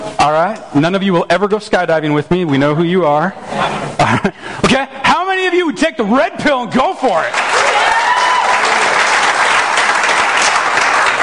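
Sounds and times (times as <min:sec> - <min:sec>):
speech: 0:00.2 - 0:07.8
audience applause: 0:07.2 - 0:11.2.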